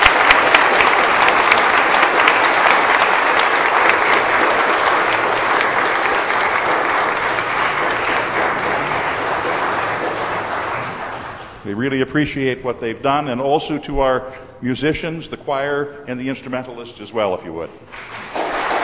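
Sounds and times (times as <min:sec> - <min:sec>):
audience applause for the organists: 0:00.0 - 0:11.7, 0:17.9 - 0:18.8
speech: 0:11.8 - 0:18.3.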